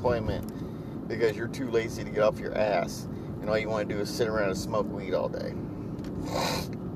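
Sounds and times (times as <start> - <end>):
speech: 0.0 - 6.8
person sniffing from a cold: 6.2 - 6.8.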